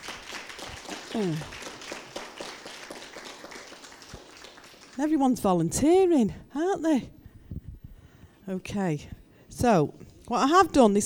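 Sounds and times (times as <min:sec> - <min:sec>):
audience clapping: 0:00.0 - 0:05.3
speech: 0:01.1 - 0:01.6, 0:05.0 - 0:07.2, 0:08.5 - 0:11.0.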